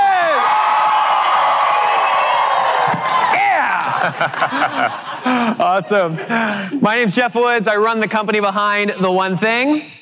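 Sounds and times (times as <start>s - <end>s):
large crowd cheering loudly: 0.0s - 5.4s
laughter: 3.4s - 6.9s
speech: 4.0s - 9.9s.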